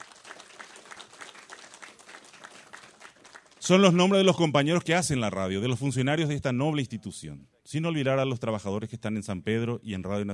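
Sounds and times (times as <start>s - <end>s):
applause: 0.0s - 4.5s
speech: 3.7s - 10.3s.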